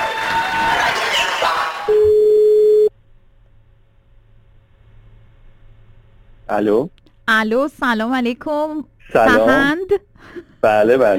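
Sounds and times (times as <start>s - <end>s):
noisy crowd cheering: 0.0s - 1.9s
telephone line tone while a radio station calls a listener: 1.9s - 2.9s
speech: 6.5s - 11.1s.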